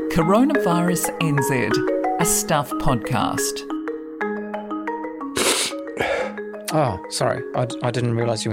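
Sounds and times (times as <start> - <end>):
speech: 0.2 - 3.8, 6.7 - 8.5
person sniffing: 5.4 - 6.4.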